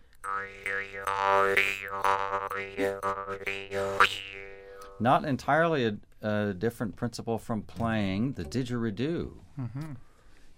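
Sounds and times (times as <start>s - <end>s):
jaw harp twanging: 0.2s - 5.0s, 8.2s - 9.2s
speech: 0.4s - 10.5s.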